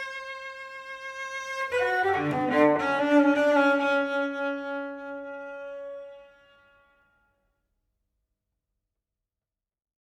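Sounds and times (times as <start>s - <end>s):
musical notes in three variations: 1.7s - 6.3s.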